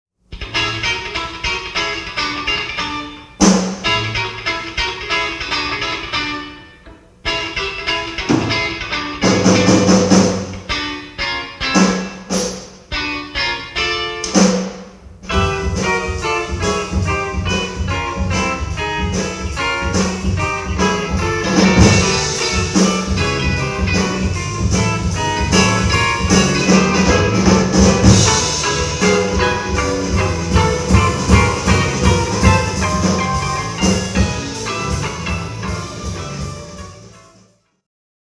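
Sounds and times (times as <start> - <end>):
jazz music: 0.4 - 37.7.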